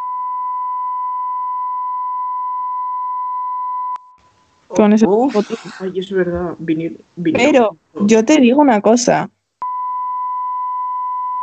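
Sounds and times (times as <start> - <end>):
censor bleep: 0.0 - 4.2, 9.6 - 11.4
speech: 4.7 - 9.4.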